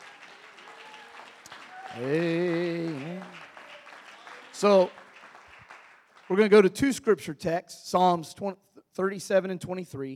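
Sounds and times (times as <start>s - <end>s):
audience hand clap of praise: 0.0s - 6.9s
speech: 2.0s - 2.6s, 4.6s - 5.0s, 6.3s - 10.1s.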